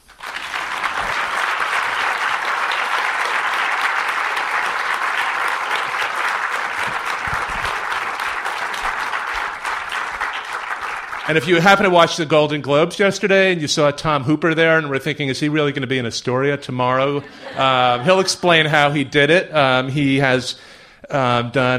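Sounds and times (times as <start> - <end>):
audience applause welcoming a guest onto the stage: 0.0 - 12.1
speech: 11.3 - 21.7
laughter: 17.1 - 19.1.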